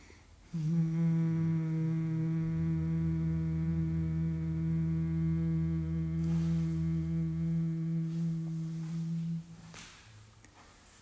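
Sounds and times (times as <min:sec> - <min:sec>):
person humming on the out-breath: 0:00.5 - 0:09.8.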